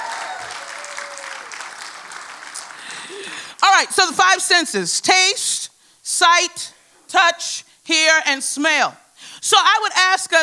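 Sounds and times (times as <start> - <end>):
audience clapping: 0.0 - 3.6
speech: 3.8 - 5.6, 6.2 - 10.4.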